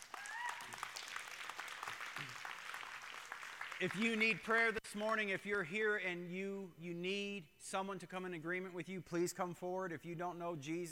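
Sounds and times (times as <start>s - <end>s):
faint voices and whoops: 0.0s - 1.0s
audience applause: 0.0s - 4.4s
speech: 3.8s - 10.9s.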